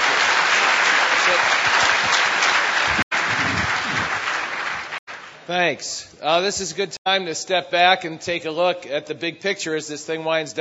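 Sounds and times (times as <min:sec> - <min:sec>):
audience applause: 0:00.0 - 0:05.5
speech: 0:05.5 - 0:10.5.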